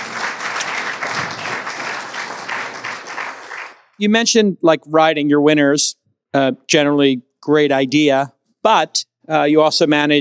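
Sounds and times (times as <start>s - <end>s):
audience round of applause: 0.0s - 4.0s
speech: 4.0s - 10.1s.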